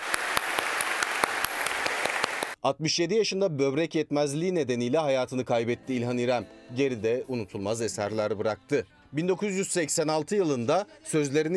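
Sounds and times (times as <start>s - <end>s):
crowd applauding at a funeral ceremony: 0.0s - 2.6s
speech: 2.6s - 11.5s.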